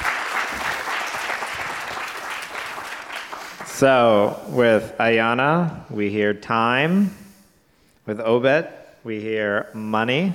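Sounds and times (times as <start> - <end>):
crowd applauding: 0.0 - 3.9
speech: 3.8 - 7.2, 8.1 - 10.3.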